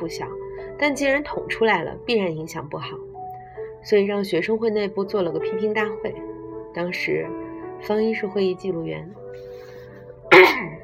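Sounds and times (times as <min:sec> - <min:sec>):
speech: 0:00.0 - 0:03.1, 0:03.8 - 0:09.5
throat clearing: 0:10.3 - 0:10.8.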